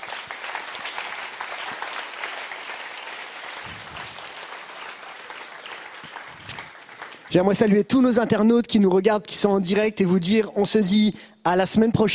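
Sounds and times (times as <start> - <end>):
audience applause: 0.0 - 7.6
speech: 7.3 - 12.1.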